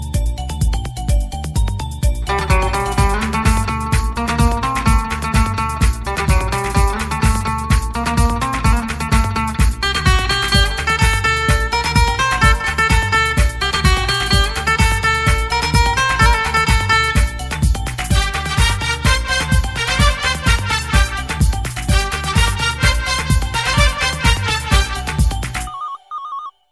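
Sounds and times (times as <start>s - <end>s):
instrumental ringtone: 0.0s - 26.7s.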